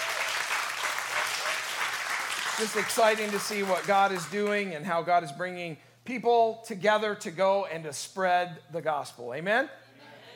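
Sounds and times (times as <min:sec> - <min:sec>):
audience applause: 0:00.0 - 0:04.3
speech: 0:02.6 - 0:09.8.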